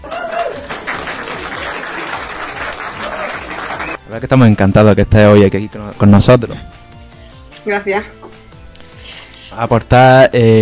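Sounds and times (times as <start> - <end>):
applause: 0.0 - 4.0
speech: 4.1 - 6.7, 7.6 - 8.2, 9.5 - 10.6.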